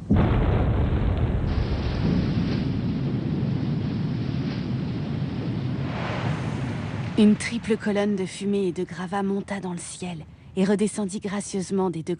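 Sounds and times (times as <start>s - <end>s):
muffled explosion from blasting a dam for a canal: 0.0s - 9.0s
long heavy rumble: 0.0s - 10.4s
speech: 7.2s - 12.1s.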